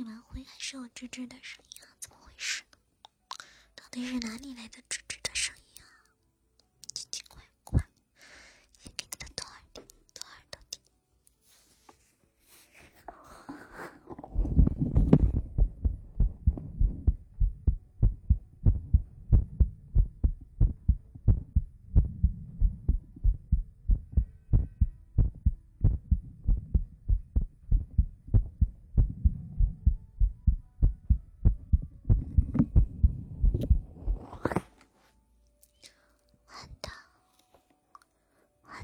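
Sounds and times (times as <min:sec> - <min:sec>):
speech: 0:00.5 - 0:02.6, 0:03.9 - 0:05.5
heartbeat thumping: 0:14.2 - 0:34.4.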